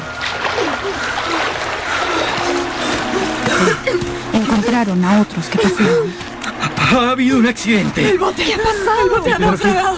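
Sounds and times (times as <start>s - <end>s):
people jumping into water splash: 0.0s - 4.0s
laughter: 0.6s - 9.9s
speech: 4.8s - 9.9s.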